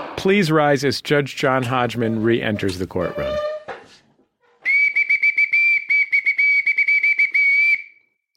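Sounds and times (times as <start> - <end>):
speech: 0.2 - 3.4
bosun's whistle blown: 4.6 - 8.2.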